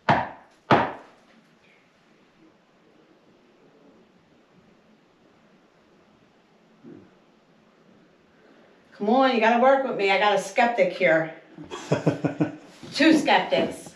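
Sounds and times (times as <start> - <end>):
knocking on wood: 0.0 - 1.0
speech: 9.0 - 12.2, 13.0 - 13.8
laughter: 11.6 - 12.6.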